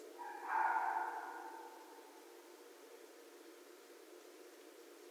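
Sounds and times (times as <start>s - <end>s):
red fox calling: 0.1s - 2.6s.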